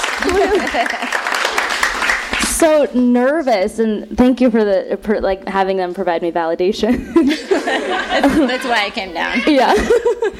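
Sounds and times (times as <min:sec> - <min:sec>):
applause: 0:00.0 - 0:02.7
laughter: 0:00.1 - 0:01.3, 0:07.0 - 0:10.3
speech: 0:00.2 - 0:02.0, 0:02.6 - 0:10.3.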